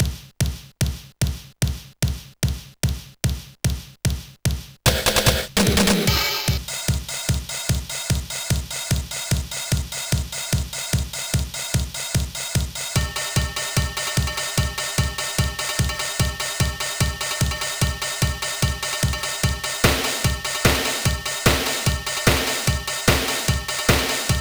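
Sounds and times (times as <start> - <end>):
dynamic drums: 0.0 - 24.4
disco music: 4.9 - 24.4.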